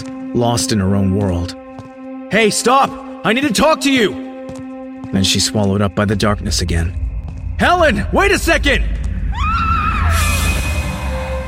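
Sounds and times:
speech: 0.3s - 1.6s, 2.3s - 4.2s, 5.1s - 7.0s, 7.6s - 9.0s
low hum: 6.0s - 11.4s
woman screaming as she is attacked in the dark: 9.2s - 10.7s.

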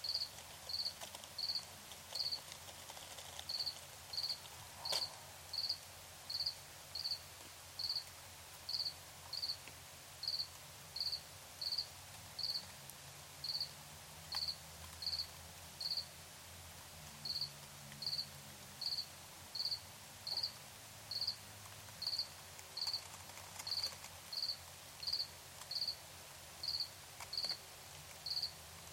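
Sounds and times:
cricket chirping: 0.0s - 2.4s, 3.5s - 7.2s, 7.8s - 8.1s, 8.7s - 9.6s, 10.2s - 12.7s, 13.4s - 13.7s, 14.4s - 16.1s, 17.2s - 21.4s, 22.0s - 26.0s, 26.6s - 27.6s, 28.2s - 28.9s
soft background hiss: 0.0s - 28.9s.

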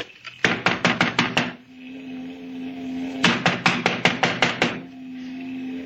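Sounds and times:
loud knocking on a door: 0.5s - 1.6s, 3.2s - 4.9s.

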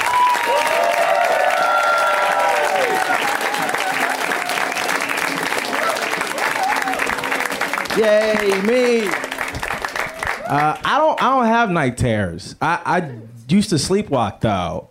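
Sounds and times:
excited cheers and whoops: 0.0s - 7.6s, 9.9s - 10.7s
audience applause: 0.0s - 11.3s
speech: 8.0s - 9.2s, 10.5s - 14.8s.

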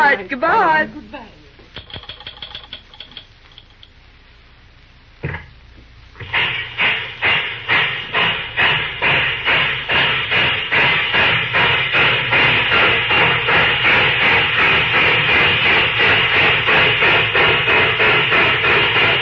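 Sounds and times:
speech: 0.1s - 1.3s
light metallic ticking: 1.7s - 4.0s
train engine chuffing while switching in a rail yard: 6.2s - 19.2s.

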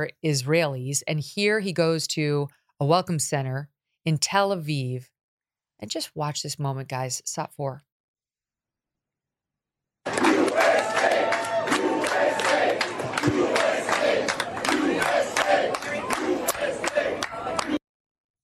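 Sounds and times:
speech: 0.0s - 5.1s, 5.8s - 7.9s
clapping: 10.1s - 17.8s
large crowd cheering and shouting: 10.1s - 17.8s.

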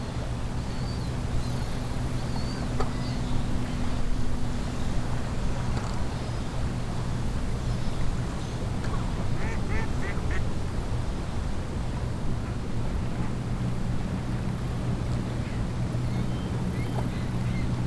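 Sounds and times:
lake water lapping: 0.6s - 17.8s.

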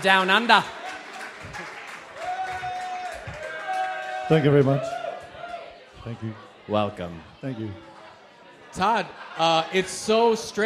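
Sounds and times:
speech: 0.0s - 0.8s, 4.3s - 5.0s, 6.0s - 7.9s, 8.7s - 10.6s
audience applause: 0.0s - 5.6s.

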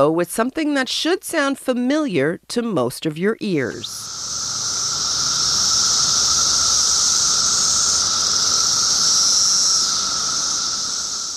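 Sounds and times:
speech: 0.0s - 4.4s
rhythmic thrum of cicadas: 3.8s - 11.3s.

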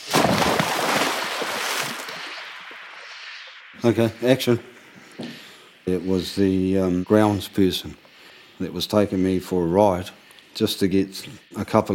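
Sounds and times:
water splashing as something lands in Lake Ellis: 0.0s - 3.8s
speech: 3.8s - 4.7s, 5.9s - 8.0s, 8.6s - 11.9s.

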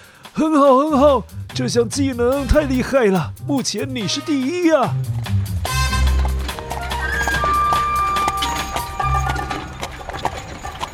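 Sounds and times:
speech: 0.4s - 5.3s
limping horse with ill-fitting horseshoes pulling an arriving carriage: 5.2s - 10.9s.

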